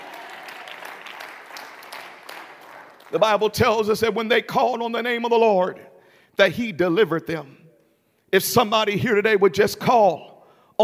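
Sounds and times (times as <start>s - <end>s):
audience clapping hands: 0.0s - 3.5s
speech: 3.1s - 7.6s, 8.3s - 10.8s.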